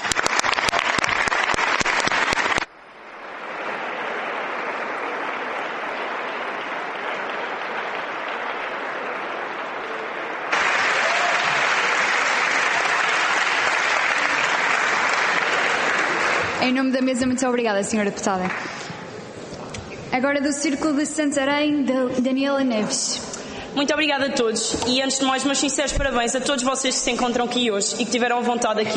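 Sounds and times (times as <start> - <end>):
sustained applause from a large audience: 0.0 - 16.9
speech: 17.2 - 18.9, 20.2 - 28.9.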